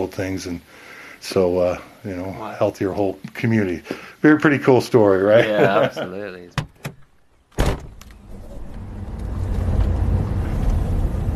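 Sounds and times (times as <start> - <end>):
speech: 0.1 - 6.7
laughter: 5.2 - 6.5
sharp thud: 7.6 - 8.0
car engine rumble: 7.8 - 11.3.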